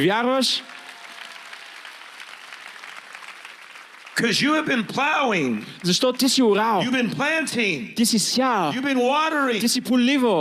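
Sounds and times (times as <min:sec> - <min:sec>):
speech: 0:00.0 - 0:00.8, 0:04.2 - 0:10.3
audience clapping hands: 0:00.0 - 0:06.7.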